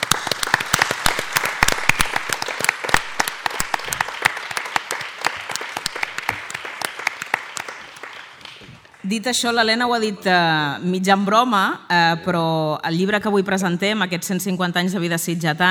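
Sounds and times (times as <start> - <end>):
audience applause: 0.0 - 9.1
speech: 9.1 - 15.6.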